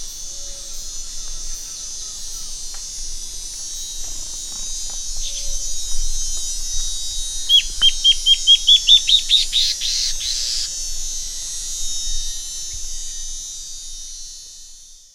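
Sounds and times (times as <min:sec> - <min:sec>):
bird song: 0:07.5 - 0:10.7.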